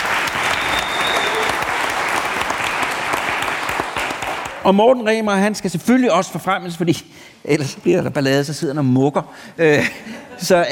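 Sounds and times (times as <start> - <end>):
audience clapping for a sound engineer's promotion: 0.0 - 4.8
speech: 4.6 - 10.6.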